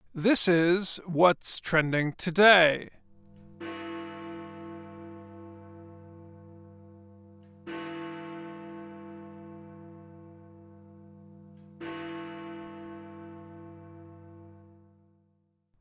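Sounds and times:
speech: 0.2 - 3.0
large clock tower bell in London striking the hour: 3.4 - 15.2.

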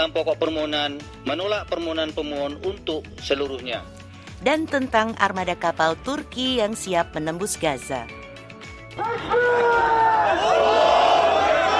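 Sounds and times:
speech: 0.0 - 8.2, 9.0 - 10.9
street demonstration crowd shouting in a chant-like roar: 9.0 - 11.7.

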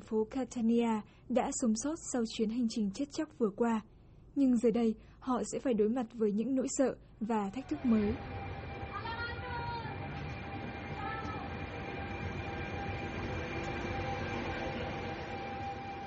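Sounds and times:
speech: 0.1 - 8.4
faint tonal whine of a train: 7.4 - 16.0
train carrying migrants departing in Catania: 7.6 - 16.0.

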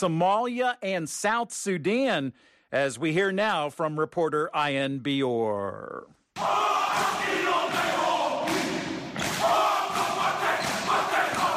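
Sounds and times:
speech: 0.0 - 7.4
New Zealand basketball team performing a Māori haka war cry: 6.4 - 11.5.

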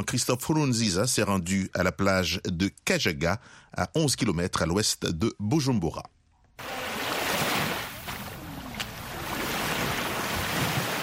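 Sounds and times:
speech: 0.0 - 6.8
morning waves on the beach of Lake Tanganyika at Kajaga: 6.6 - 11.0.

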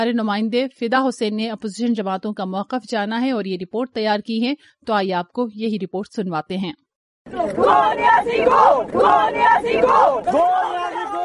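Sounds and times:
speech: 0.0 - 11.2
parliamentarians chanting slogans outside Parliament House after the federal budget announcement: 7.3 - 11.2.

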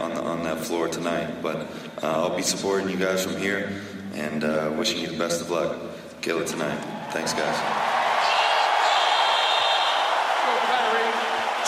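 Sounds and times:
speech: 0.4 - 7.9
arena crowd cheering: 6.8 - 11.6.

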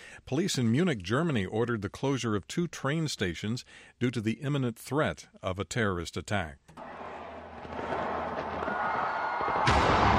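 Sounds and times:
speech: 0.3 - 6.9
New Year fireworks display exploding in Sydney: 6.8 - 10.1.

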